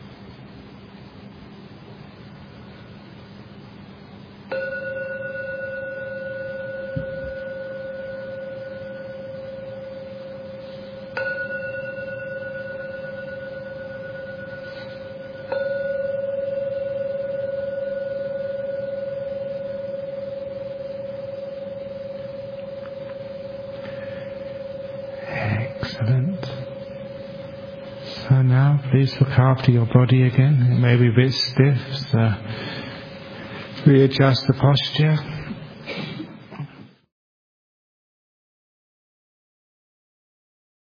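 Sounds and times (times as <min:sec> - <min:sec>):
Buddhist gong ringing out: 0:04.5 - 0:34.2
speech: 0:29.1 - 0:32.8, 0:33.8 - 0:35.3.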